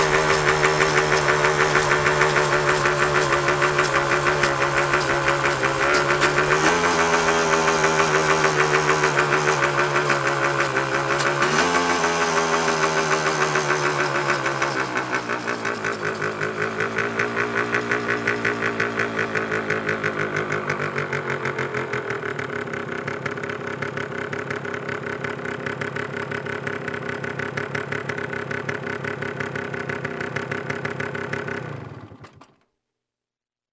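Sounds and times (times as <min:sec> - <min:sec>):
motorcycle: 0:00.0 - 0:32.7.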